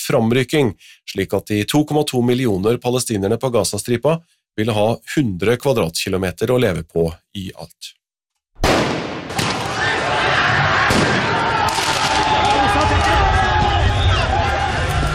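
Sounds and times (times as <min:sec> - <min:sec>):
speech: 0:00.0 - 0:08.0
sharp bangs: 0:08.6 - 0:10.0, 0:10.8 - 0:12.4
crowd roaring and shouting in football riots in France: 0:09.3 - 0:15.1.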